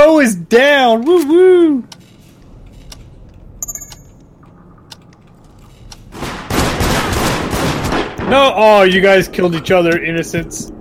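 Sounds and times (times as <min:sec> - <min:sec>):
speech: 0:00.2 - 0:01.9, 0:08.3 - 0:10.8
video game gunfire: 0:06.1 - 0:08.8.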